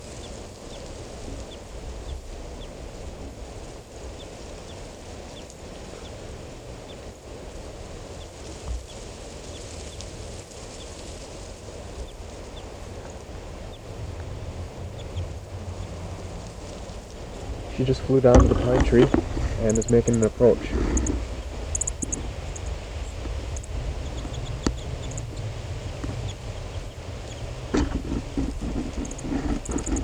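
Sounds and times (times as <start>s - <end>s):
constant rushing wind-like noise: 11.8s - 30.0s
wild bird chirping in a tree: 12.0s - 30.0s
speech: 17.8s - 20.8s.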